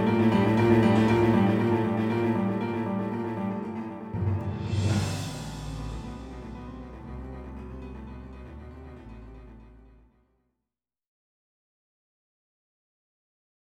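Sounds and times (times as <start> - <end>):
suspenseful game music: 0.0 - 10.2.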